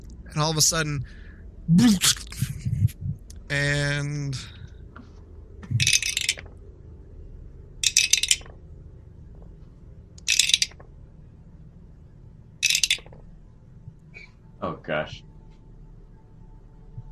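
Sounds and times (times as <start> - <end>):
low hum: 0.0 - 17.1
speech: 0.4 - 2.5, 3.5 - 4.6, 14.6 - 15.3
dice being rolled: 5.8 - 6.4, 7.8 - 8.5, 10.2 - 10.8, 12.6 - 13.1.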